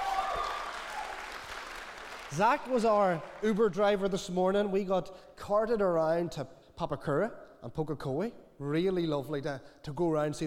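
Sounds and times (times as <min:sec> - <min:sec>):
audience clapping: 0:00.0 - 0:03.7
speech: 0:02.3 - 0:10.4.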